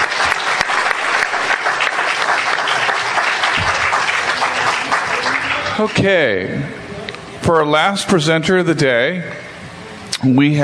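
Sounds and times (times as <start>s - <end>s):
audience applause for a presenter at a day of talks: 0.0s - 6.3s
speech: 5.8s - 6.8s, 7.4s - 9.4s, 10.2s - 10.6s.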